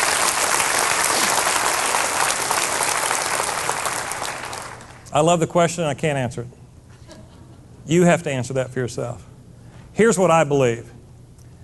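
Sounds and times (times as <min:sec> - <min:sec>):
audience round of applause: 0:00.0 - 0:05.0
speech: 0:05.2 - 0:06.6, 0:07.9 - 0:09.3, 0:10.0 - 0:11.0.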